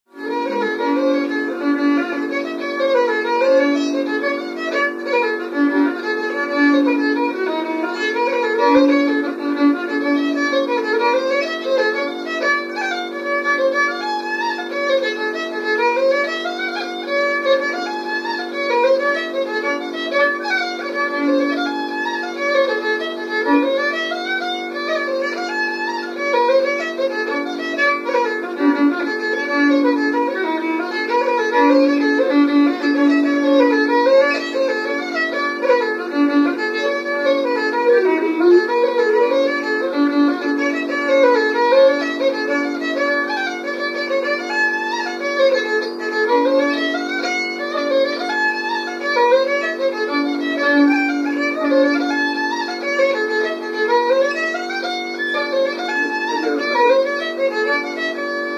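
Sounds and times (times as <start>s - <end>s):
jig tune: 0.1s - 58.5s.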